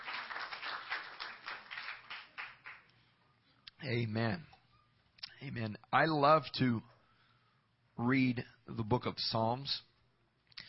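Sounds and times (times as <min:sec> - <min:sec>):
audience clapping hands: 0:00.0 - 0:03.0
speech: 0:03.8 - 0:04.5, 0:05.4 - 0:06.9, 0:08.0 - 0:09.9.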